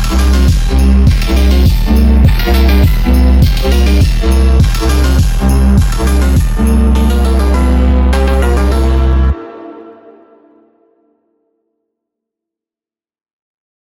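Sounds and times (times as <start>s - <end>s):
Christmas phonk 8D remix: 0.0s - 10.7s.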